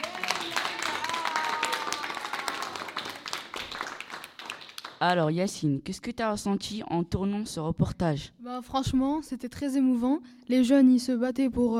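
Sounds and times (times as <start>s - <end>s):
audience applause: 0.0s - 5.0s
speech: 5.0s - 11.7s.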